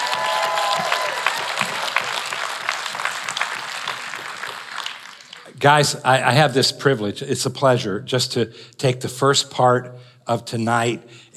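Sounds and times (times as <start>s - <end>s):
audience applause at a church service: 0.0s - 5.6s
speech: 5.6s - 11.3s.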